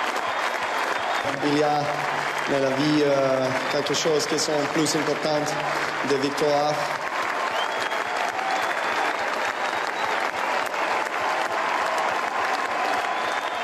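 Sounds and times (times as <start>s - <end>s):
large crowd applause at Roland Garros for Novak Djokovic: 0.0s - 13.6s
speech: 1.2s - 7.0s.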